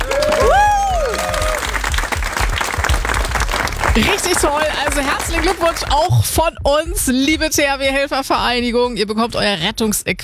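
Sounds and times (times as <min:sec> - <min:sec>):
cheers and whoops: 0:00.0 - 0:01.8
crowd applauding: 0:00.0 - 0:06.2
speech: 0:04.0 - 0:10.2.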